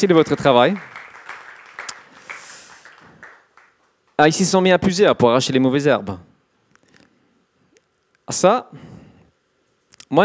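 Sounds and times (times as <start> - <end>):
speech: 0.0 - 1.0, 4.2 - 6.3, 8.3 - 9.0
crowd applauding: 0.0 - 4.1.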